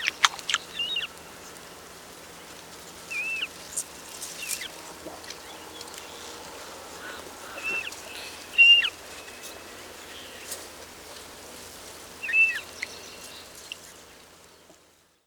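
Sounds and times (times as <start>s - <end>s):
marsh harrier singing: 0.0s - 1.1s, 3.1s - 10.8s, 12.2s - 14.7s.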